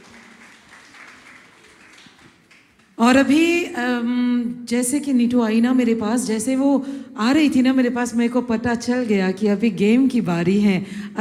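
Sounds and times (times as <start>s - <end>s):
crowd applauding: 0.0s - 3.0s
speech: 3.0s - 11.1s.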